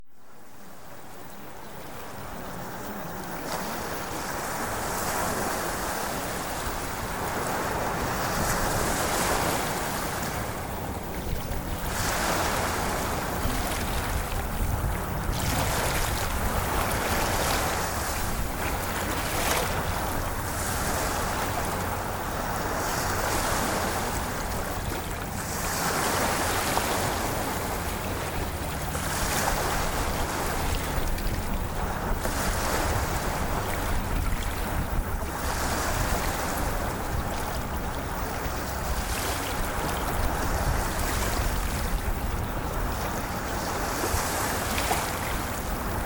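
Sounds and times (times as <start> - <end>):
ocean waves: 0.0 - 46.0.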